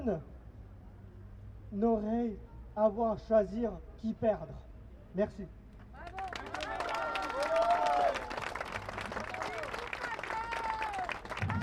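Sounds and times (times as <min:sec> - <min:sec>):
speech: 0:00.0 - 0:00.3, 0:01.7 - 0:05.6
audience applause: 0:06.1 - 0:11.6.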